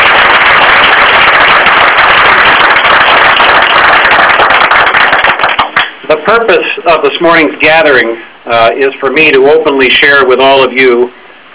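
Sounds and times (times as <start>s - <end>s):
round of applause: 0.0s - 6.0s
speech: 6.3s - 11.5s.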